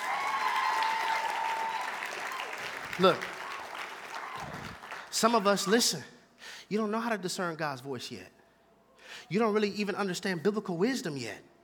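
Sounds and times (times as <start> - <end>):
crowd applause: 0.0 - 5.1
speech: 3.0 - 3.4, 5.2 - 6.1, 6.7 - 8.4, 9.2 - 11.5.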